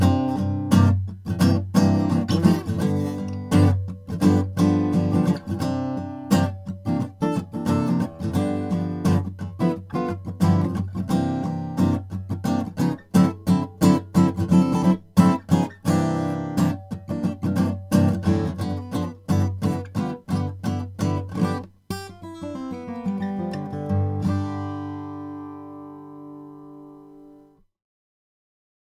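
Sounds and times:
1980 Brazilian rosewood deluxe jumbo acoustic guitar: 0.0 - 27.6.

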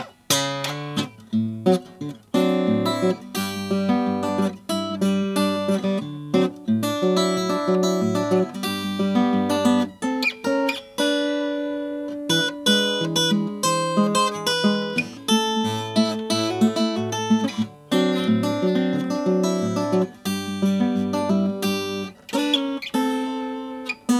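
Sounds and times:
Martin 00-18 acoustic guitar with natural finish: 0.0 - 24.1.

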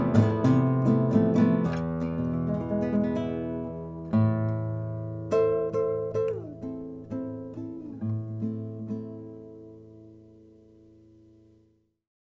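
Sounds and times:
crossover nylon string guitar: 0.0 - 11.7.

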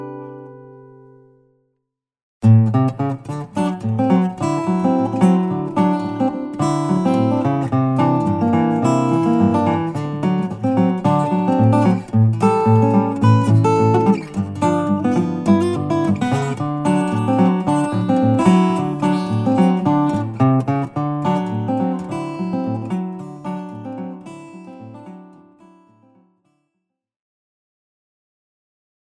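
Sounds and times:
Froggy Bottom deep body 12 fret 00 guitar: 0.0 - 1.7, 2.4 - 26.6.

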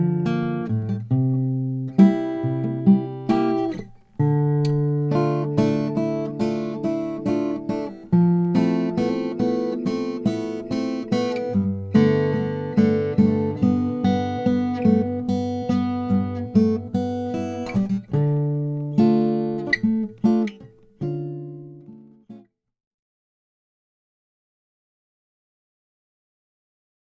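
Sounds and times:
koa acoustic guitar: 0.0 - 22.5.

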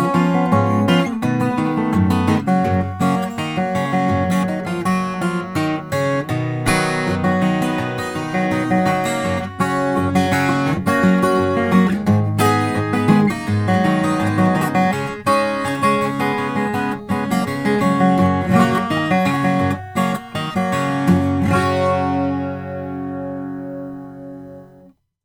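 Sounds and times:
twelve-string acoustic guitar: 0.0 - 24.9.

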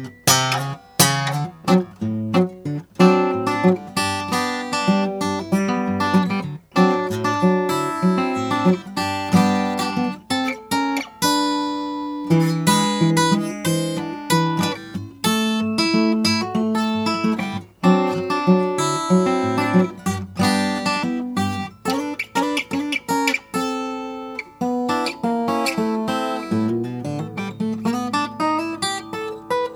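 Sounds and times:
Gibson J-45 sunburst guitar: 0.0 - 29.7.

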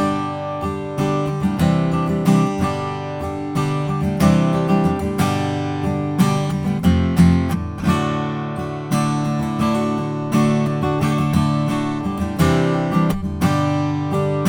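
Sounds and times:
Taylor Style 1 figured mahogany guitar playing: 0.0 - 14.4.

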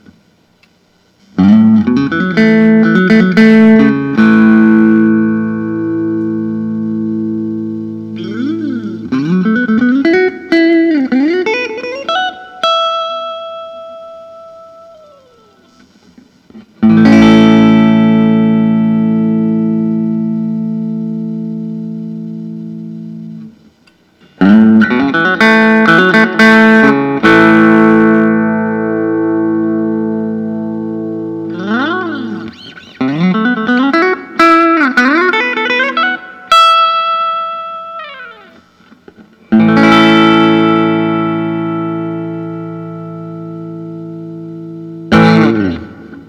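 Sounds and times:
vintage white semi-hollow body electric guitar: 0.0 - 46.2.

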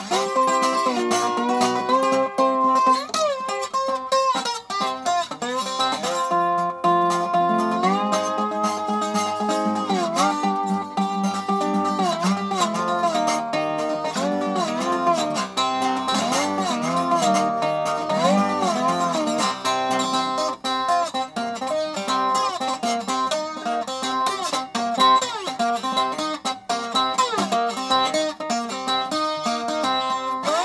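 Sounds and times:
1966 Dobro Columbia Model D12 mahogany 12-string guitar: 0.0 - 30.6.

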